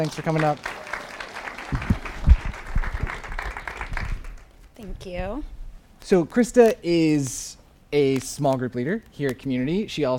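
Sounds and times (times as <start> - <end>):
speech: 0.0 - 0.8, 5.0 - 10.1
round of applause: 0.0 - 4.5.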